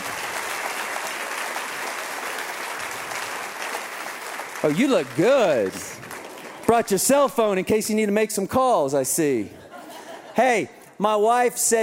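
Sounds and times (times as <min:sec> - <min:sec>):
audience applause: 0:00.0 - 0:07.3
speech: 0:04.6 - 0:06.0, 0:06.7 - 0:09.6, 0:10.4 - 0:11.8
laughter: 0:09.4 - 0:10.8.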